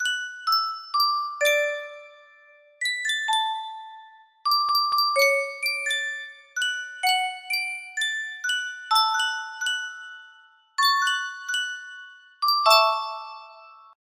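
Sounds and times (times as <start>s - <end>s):
music box melody: 0.0s - 14.0s.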